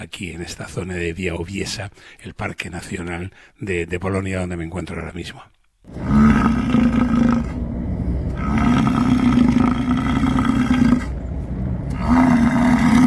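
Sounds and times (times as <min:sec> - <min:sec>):
speech: 0:00.0 - 0:07.1
bison bellowing: 0:05.9 - 0:07.6, 0:08.3 - 0:13.0.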